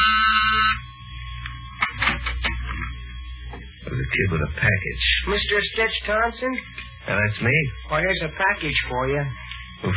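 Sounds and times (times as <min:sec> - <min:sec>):
door buzzer: 0:00.0 - 0:02.9, 0:09.8 - 0:09.9
speech: 0:04.1 - 0:09.9.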